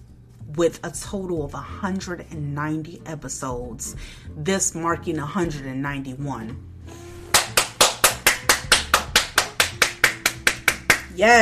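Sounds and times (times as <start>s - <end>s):
speech: 0.5s - 6.7s, 11.2s - 11.3s
clapping: 7.3s - 11.1s.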